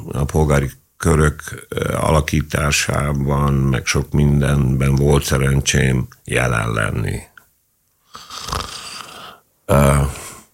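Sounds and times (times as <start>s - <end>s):
speech: 0.1s - 7.3s, 9.7s - 10.2s
snore-like heavy breath: 8.1s - 10.5s.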